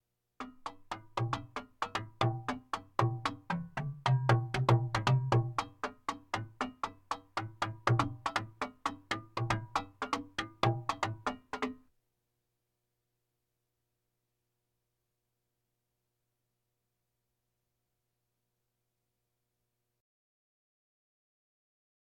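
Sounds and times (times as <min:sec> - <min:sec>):
bongos: 0:00.4 - 0:11.8
drums: 0:00.4 - 0:11.8.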